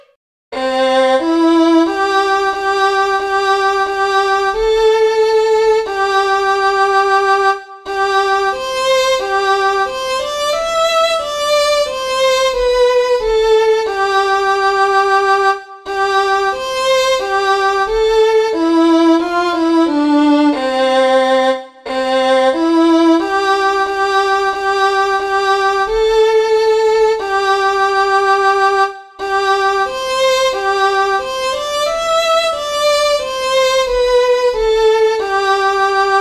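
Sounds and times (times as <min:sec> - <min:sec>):
violin: 0:00.5 - 0:36.1.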